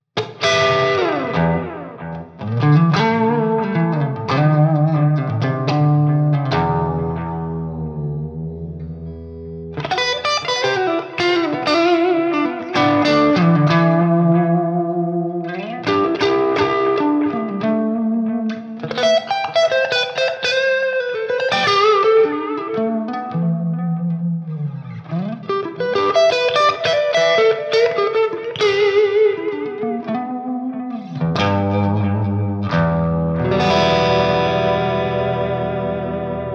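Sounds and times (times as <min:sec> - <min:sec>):
guitar with Guitar Rig 7 breakup: 0:00.2 - 0:36.5.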